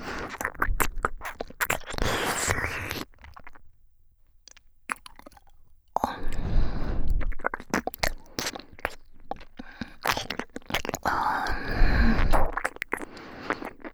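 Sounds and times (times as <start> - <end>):
close ear licking ASMR loop: 0.0 - 3.6, 4.5 - 13.9.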